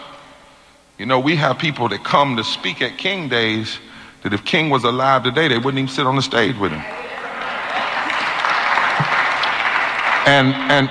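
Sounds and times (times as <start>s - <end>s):
speech: 1.0s - 7.0s, 10.3s - 10.8s
audience applause: 6.9s - 10.8s.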